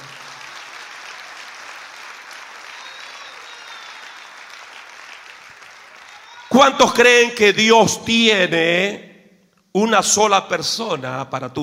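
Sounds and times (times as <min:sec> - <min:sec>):
audience applause: 0:00.0 - 0:06.8
speech: 0:06.6 - 0:09.1, 0:09.8 - 0:11.6.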